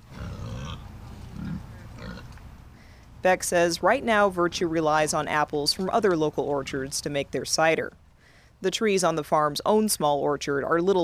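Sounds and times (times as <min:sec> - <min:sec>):
Gloucestershire Old Spot pigs grunting: 0:00.0 - 0:02.4
speech: 0:03.2 - 0:08.0, 0:08.6 - 0:11.0.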